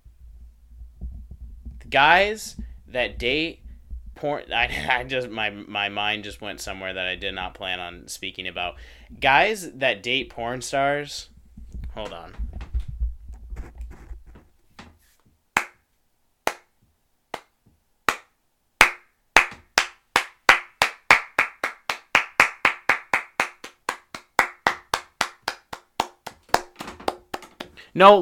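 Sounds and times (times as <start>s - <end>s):
speech: 1.9s - 3.6s, 4.2s - 11.3s, 12.0s - 12.4s, 28.0s - 28.2s
hands clapping on a stand-up comedy stage: 15.6s - 15.8s, 16.5s - 16.7s, 17.3s - 27.8s.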